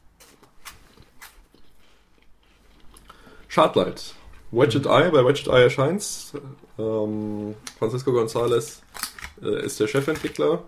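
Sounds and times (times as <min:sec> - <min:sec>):
speech: 0:03.6 - 0:08.8, 0:09.4 - 0:10.6
eating a waffle, soft dry crunching bites: 0:08.8 - 0:10.4.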